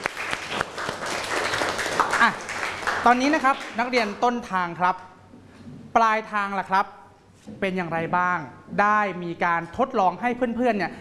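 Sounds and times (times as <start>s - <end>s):
classroom clapping for a student: 0.0s - 4.2s
speech: 2.2s - 5.1s, 6.0s - 10.9s.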